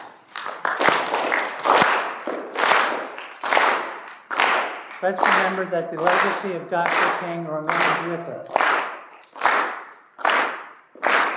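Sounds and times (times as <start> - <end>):
audience clapping hands: 0.0 - 11.3
speech: 5.0 - 8.6.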